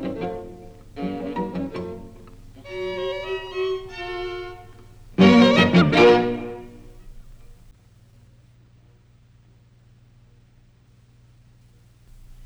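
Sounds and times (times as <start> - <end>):
string quartet: 0.0 - 7.7, 12.1 - 12.4.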